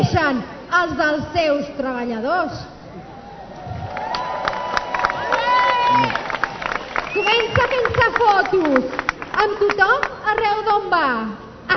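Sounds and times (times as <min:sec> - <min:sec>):
speech: 0:00.1 - 0:02.8, 0:07.1 - 0:11.7
crowd cheering: 0:03.0 - 0:09.6
crowd applause: 0:03.8 - 0:10.1.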